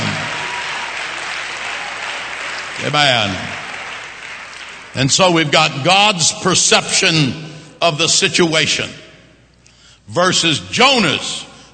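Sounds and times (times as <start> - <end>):
crowd clapping steadily together: 0.0 - 5.1
speech: 2.8 - 3.6, 5.0 - 9.0, 10.1 - 11.5.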